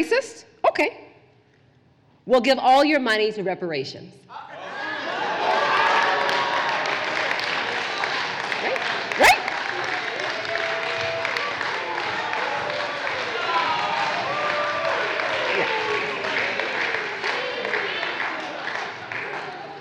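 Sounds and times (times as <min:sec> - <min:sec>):
speech: 0:00.0 - 0:01.0, 0:02.3 - 0:04.5
audience clapping: 0:04.8 - 0:19.7.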